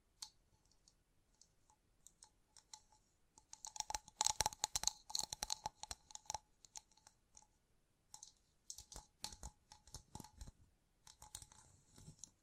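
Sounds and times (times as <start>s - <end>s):
gem-covered fingertips tapping and scratching: 0.2s - 7.2s, 8.2s - 12.4s.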